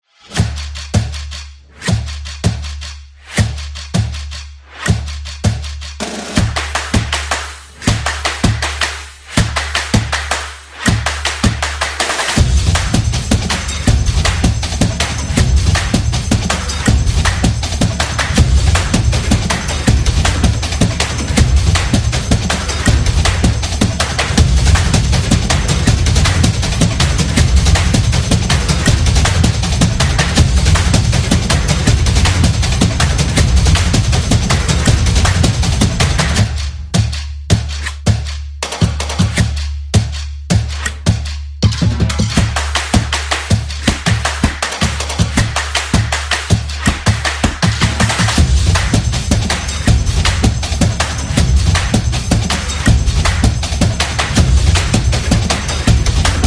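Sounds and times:
stomp and clap intro beat: 0:00.2 - 0:56.4.

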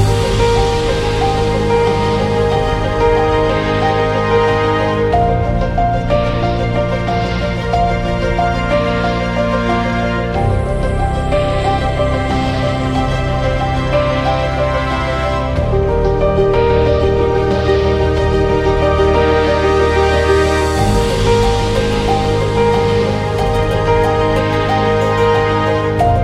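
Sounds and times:
ambient piano: 0:00.0 - 0:26.2.

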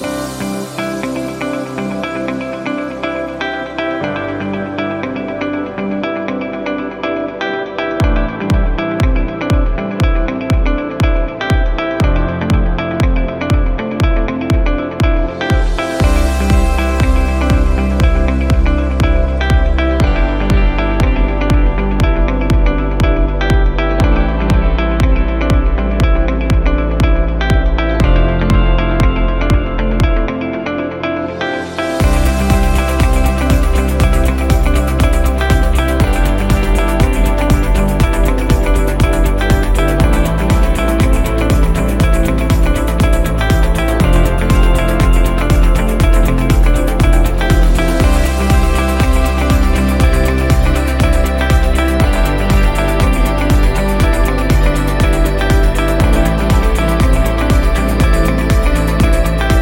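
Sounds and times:
inspiring corporate music loop: 0:00.0 - 0:59.6.

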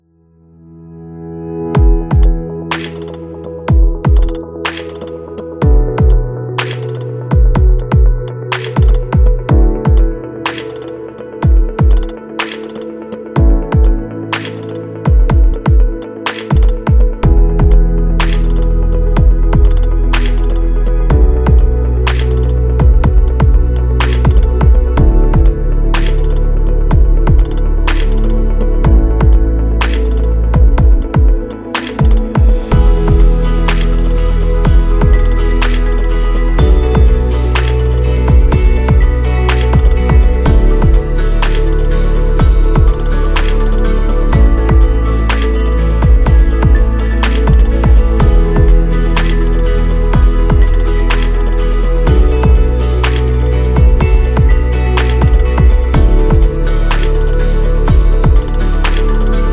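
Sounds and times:
wellness ambient music: 0:00.0 - 0:59.5.

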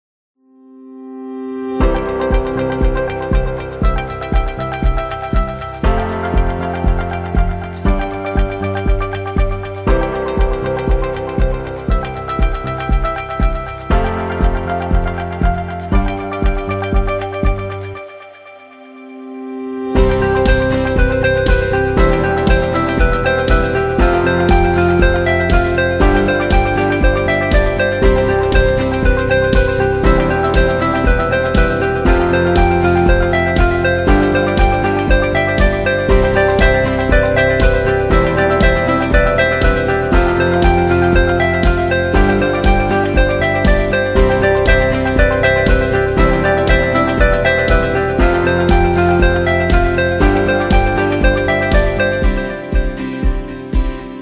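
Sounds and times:
corporate music: 0:01.6 - 0:54.2.

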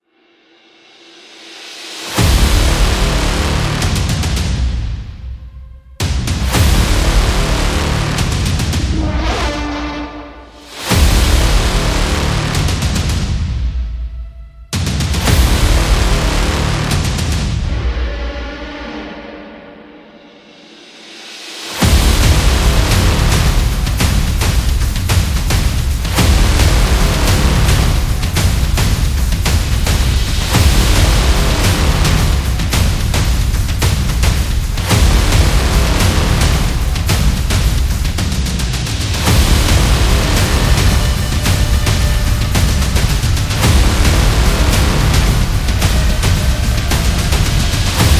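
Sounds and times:
war drum: 0:01.9 - 0:14.1, 0:14.7 - 0:18.0, 0:21.8 - 0:48.1.

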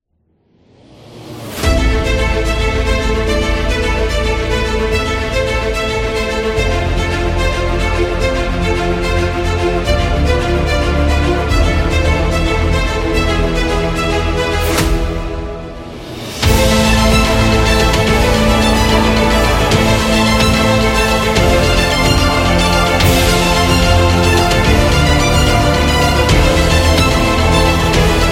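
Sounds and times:
dramatic epic cinematic music: 0:00.6 - 0:28.3.

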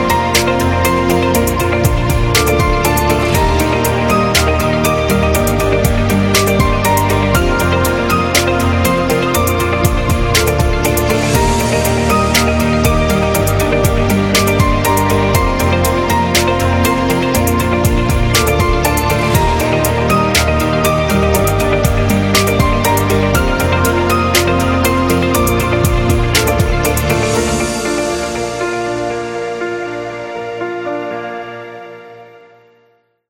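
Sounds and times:
corporate ambient background music: 0:00.0 - 0:33.1.

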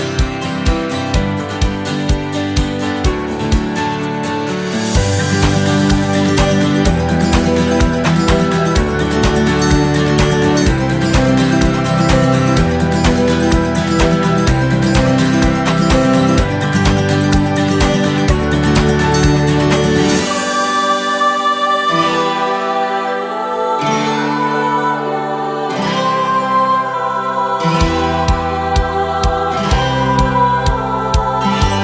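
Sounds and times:
happy acoustic guitar music: 0:00.0 - 0:31.8.

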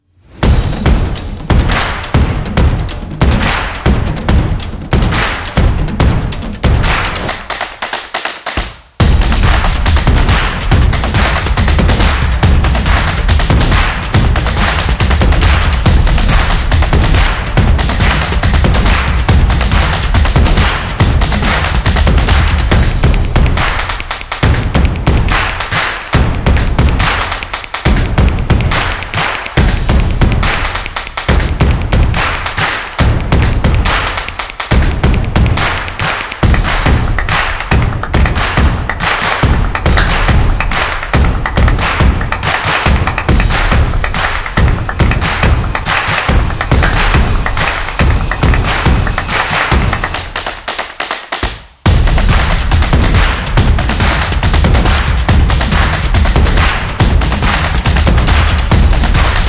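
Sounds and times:
drumming music: 0:00.3 - 0:59.4.

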